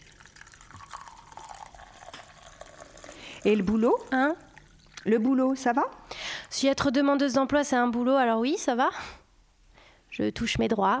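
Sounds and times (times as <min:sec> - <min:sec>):
tea poured from a pot: 0:00.0 - 0:05.6
speech: 0:03.4 - 0:09.2, 0:10.2 - 0:10.9.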